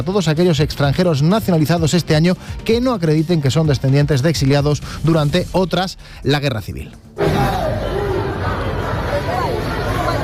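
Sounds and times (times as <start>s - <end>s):
speech: 0.0s - 7.8s
crowd noise at street clashes in the Puerta del Sol: 7.1s - 10.2s.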